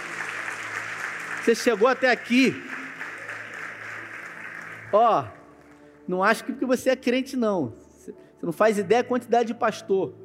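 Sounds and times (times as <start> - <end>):
audience applause: 0.0 - 5.7
speech: 1.5 - 2.7, 4.9 - 5.4, 6.1 - 10.2.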